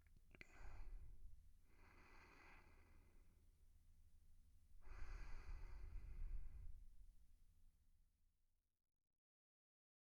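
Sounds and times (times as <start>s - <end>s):
sleeping breath: 0.4s - 3.2s, 4.8s - 6.8s.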